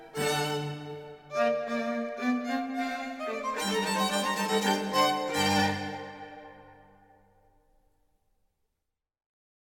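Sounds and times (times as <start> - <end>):
string quartet playing in B flat: 0.0 - 6.8.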